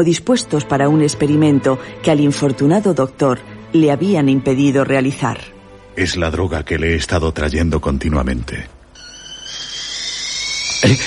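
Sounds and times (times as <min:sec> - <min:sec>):
speech: 0:00.0 - 0:08.8, 0:10.8 - 0:11.0
kettle whistling: 0:09.0 - 0:11.0.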